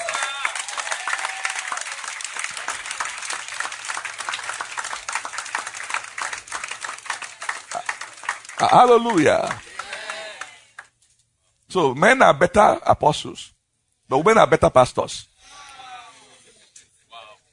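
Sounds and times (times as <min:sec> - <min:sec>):
audience applause: 0:00.0 - 0:10.9
speech: 0:08.6 - 0:09.7, 0:11.7 - 0:15.3.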